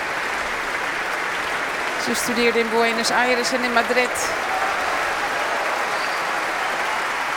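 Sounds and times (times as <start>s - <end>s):
concert audience applause: 0.0s - 7.3s
speech: 2.0s - 4.6s.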